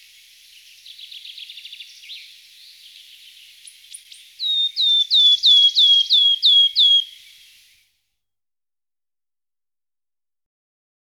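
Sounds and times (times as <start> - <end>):
wood warbler singing: 0.5 - 7.6.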